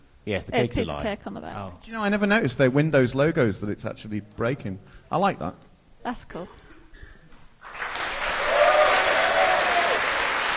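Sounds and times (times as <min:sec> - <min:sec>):
speech: 0:00.2 - 0:06.6
applause: 0:07.6 - 0:10.5
crowd cheering: 0:07.6 - 0:10.5.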